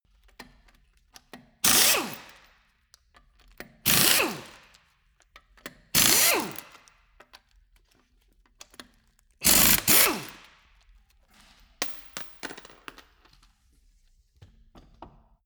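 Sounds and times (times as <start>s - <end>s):
impact wrench screw sequence: 1.6s - 2.5s, 3.6s - 4.8s, 6.0s - 6.9s, 9.4s - 10.6s.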